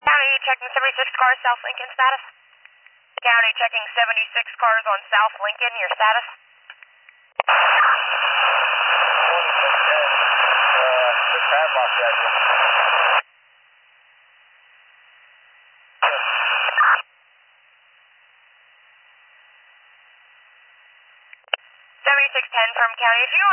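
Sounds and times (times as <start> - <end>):
radio transmission static: 0.0 - 2.3, 3.2 - 6.4, 7.4 - 13.2, 16.0 - 17.1, 21.5 - 23.5
speech: 0.5 - 2.4, 3.2 - 6.4, 7.4 - 8.6, 22.6 - 23.5.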